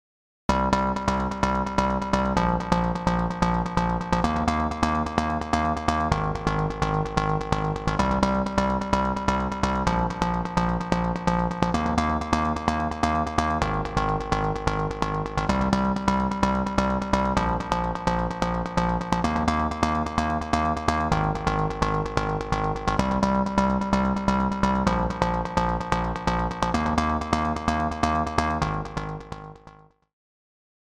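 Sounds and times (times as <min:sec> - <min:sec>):
bass: 0:00.5 - 0:30.1.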